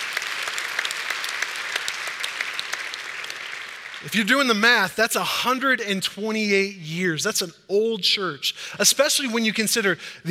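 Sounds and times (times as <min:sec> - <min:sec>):
audience applauding: 0:00.0 - 0:04.6
speech: 0:04.0 - 0:10.3.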